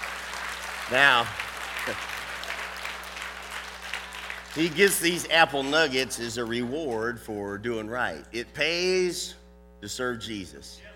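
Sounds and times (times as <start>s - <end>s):
audience applause for a trick horse performance: 0.0s - 5.9s
speech: 0.9s - 2.1s, 4.5s - 10.9s.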